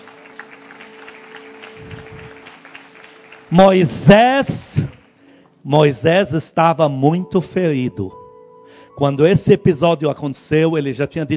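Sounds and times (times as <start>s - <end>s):
audience applauding: 0.0s - 5.2s
speech: 3.5s - 4.7s, 5.6s - 8.2s, 9.0s - 11.3s.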